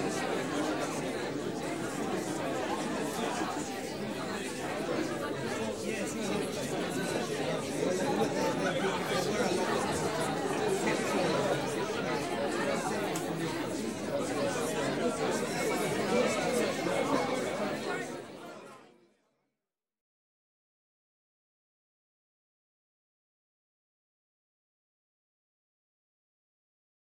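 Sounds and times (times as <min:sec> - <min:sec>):
indoor crowd at a press reception: 0:00.0 - 0:19.4.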